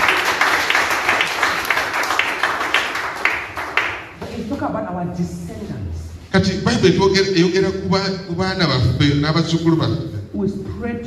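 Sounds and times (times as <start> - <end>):
audience clapping: 0.0 - 4.2
speech: 5.2 - 5.4, 6.4 - 11.0.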